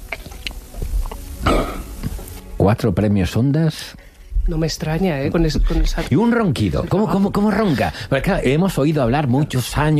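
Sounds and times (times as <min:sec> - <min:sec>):
person swallowing saliva: 0:00.0 - 0:02.2
speech: 0:02.6 - 0:09.9.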